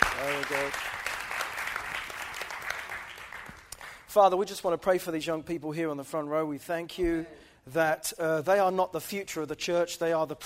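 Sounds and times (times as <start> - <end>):
church congregation clapping: 0.0 - 4.2
speech: 0.5 - 1.0, 4.1 - 10.4.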